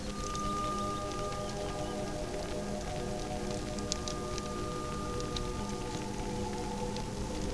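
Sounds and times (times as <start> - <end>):
song: 0.1 - 7.3.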